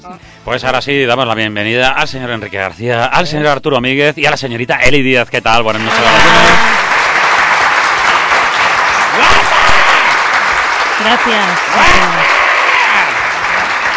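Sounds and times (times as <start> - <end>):
speech: 0.0 - 7.0, 11.0 - 12.3
audience applause: 5.7 - 13.9.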